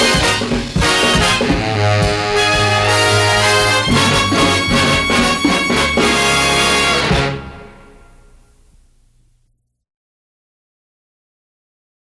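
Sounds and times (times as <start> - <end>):
instrumental music: 0.0 - 8.8.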